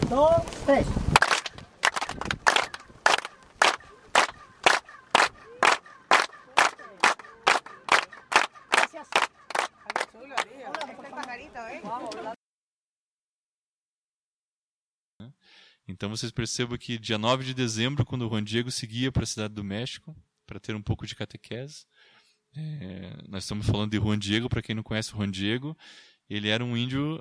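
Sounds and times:
speech: 0.2 - 1.0, 16.0 - 22.0, 22.5 - 27.1
audience clapping rhythmically in unison: 1.2 - 11.4.

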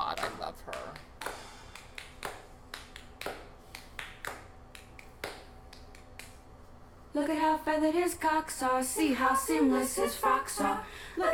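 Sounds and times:
steady rhythmic hand clapping in a played recording: 0.0 - 6.6
speech: 7.2 - 11.3.

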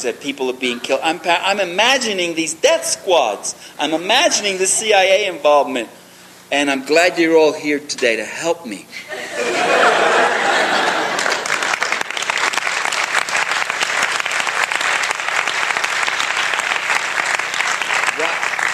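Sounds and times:
speech: 0.0 - 10.3
laughter: 9.0 - 11.7
audience applause: 10.4 - 18.7.

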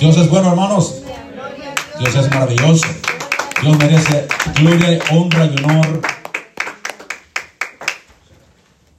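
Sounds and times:
speech: 0.0 - 6.2
audience clapping: 1.8 - 8.2.

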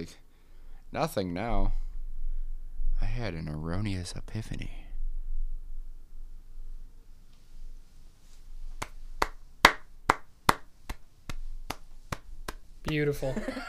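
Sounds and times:
speech: 0.0 - 0.2, 0.9 - 1.8, 3.0 - 4.8, 12.9 - 13.6
hand claps: 8.8 - 13.3
laughter: 13.2 - 13.6.

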